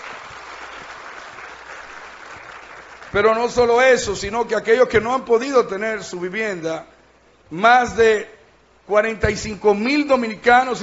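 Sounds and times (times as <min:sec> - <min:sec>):
faint audience applause for a speaker at a public address: 0:00.0 - 0:03.4
speech: 0:03.1 - 0:06.9, 0:07.5 - 0:08.3, 0:08.9 - 0:10.8.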